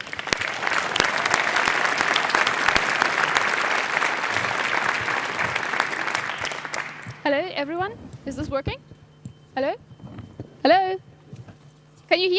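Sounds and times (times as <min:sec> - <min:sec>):
audience applause: 0:00.0 - 0:07.2
speech: 0:07.3 - 0:08.8, 0:09.6 - 0:09.9, 0:10.6 - 0:11.0, 0:12.1 - 0:12.3.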